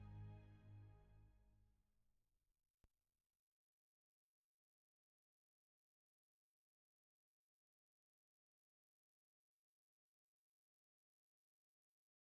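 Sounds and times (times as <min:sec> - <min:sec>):
strings: 0:00.0 - 0:01.2.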